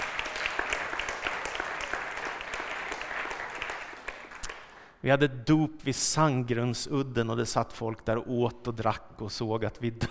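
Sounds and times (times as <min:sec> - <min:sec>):
audience applause: 0:00.0 - 0:04.9
speech: 0:05.0 - 0:10.0.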